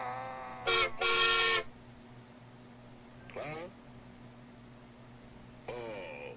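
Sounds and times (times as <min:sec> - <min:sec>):
approaching train horn: 0:00.7 - 0:01.7.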